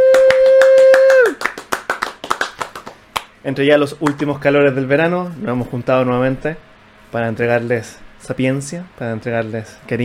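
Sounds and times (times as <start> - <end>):
audience applause: 0.0 - 3.3
speech: 3.4 - 10.0.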